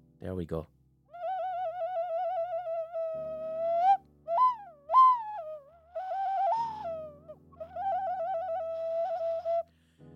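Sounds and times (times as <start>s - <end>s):
ocarina melody: 1.1s - 9.7s.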